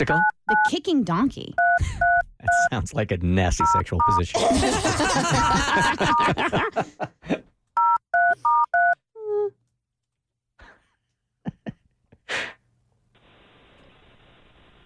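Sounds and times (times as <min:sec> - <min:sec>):
telephone number being dialed on a keypad: 0:00.0 - 0:00.7, 0:01.6 - 0:02.7, 0:03.6 - 0:04.2, 0:07.8 - 0:09.0
speech: 0:00.0 - 0:07.4
people laughing: 0:04.3 - 0:07.5.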